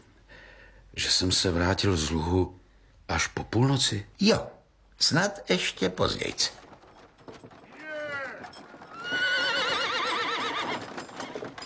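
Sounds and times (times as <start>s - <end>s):
speech: 1.0s - 6.6s
horse hooves clopping: 5.4s - 11.6s
horse neighing: 7.6s - 11.6s.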